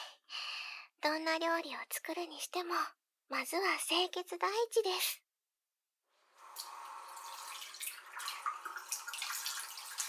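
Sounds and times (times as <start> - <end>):
speech: 1.0 - 5.2
tap water running: 6.3 - 10.0.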